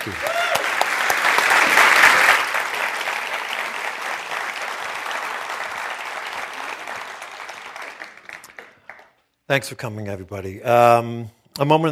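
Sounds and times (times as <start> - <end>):
speech: 0.0 - 0.3, 9.5 - 11.9
audience at the Los Angeles Public Library applauding to welcome speakers: 0.0 - 9.2.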